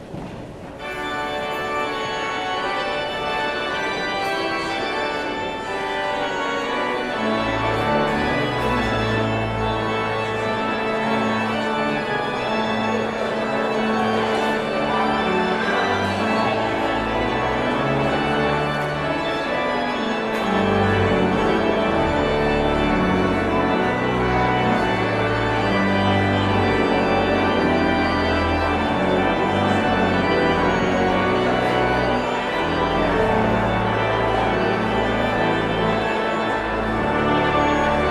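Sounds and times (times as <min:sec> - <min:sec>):
postlude: 0:00.0 - 0:38.0.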